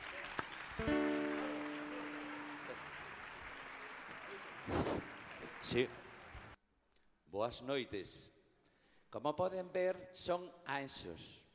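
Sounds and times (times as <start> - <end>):
audience applause: 0.0 - 6.6
speech: 0.8 - 1.0, 5.7 - 6.0, 7.3 - 8.4, 9.1 - 11.4
held musical chord: 0.8 - 2.9.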